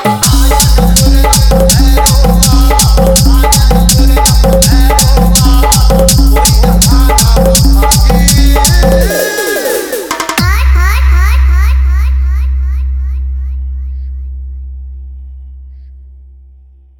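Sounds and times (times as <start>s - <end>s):
bass sound: 0.2s - 9.1s, 10.4s - 16.9s.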